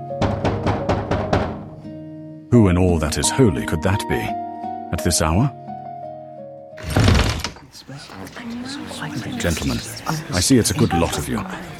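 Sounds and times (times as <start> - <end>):
knocking on a door: 0.2 - 1.8
speech: 2.5 - 5.6, 7.9 - 11.7.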